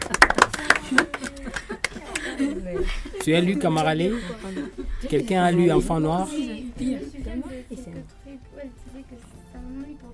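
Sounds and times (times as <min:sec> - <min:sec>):
audience applause: 0:00.0 - 0:02.6
laughter: 0:00.0 - 0:07.6
speech: 0:02.9 - 0:07.5.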